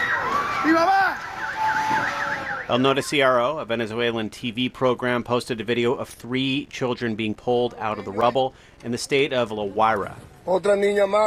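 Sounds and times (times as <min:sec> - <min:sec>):
people screaming in earthquake: 0:00.0 - 0:03.1
speech: 0:00.6 - 0:01.0, 0:02.7 - 0:11.2.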